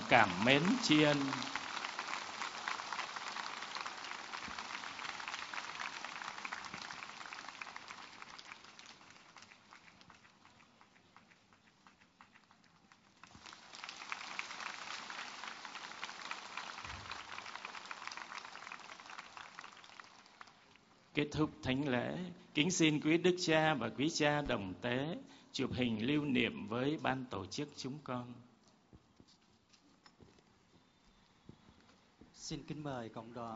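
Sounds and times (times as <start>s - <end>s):
congregation warm applause: 0.0s - 20.7s
speech: 0.1s - 1.5s, 21.2s - 28.5s, 32.5s - 33.5s.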